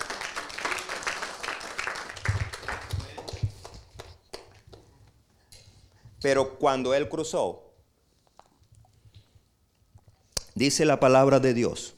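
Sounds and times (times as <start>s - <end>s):
audience applause: 0.0s - 4.1s
speech: 6.2s - 7.6s, 10.6s - 11.9s.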